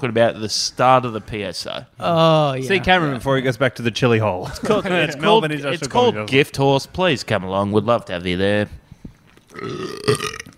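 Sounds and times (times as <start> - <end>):
speech: 0.0 - 8.8, 9.6 - 10.4
burp: 9.5 - 10.5.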